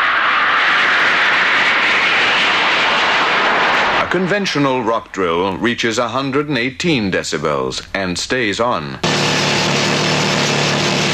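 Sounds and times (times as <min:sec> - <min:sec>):
DC-8 jet airliner starting 50 yards away: 0:00.0 - 0:04.6, 0:09.0 - 0:11.1
speech: 0:04.1 - 0:09.4.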